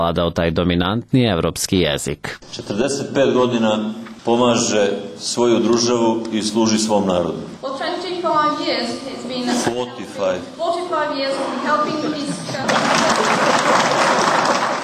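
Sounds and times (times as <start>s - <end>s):
speech: 0.0s - 13.5s
applause for Tomislav Nikolić after he corrected an interpreter: 12.6s - 14.8s.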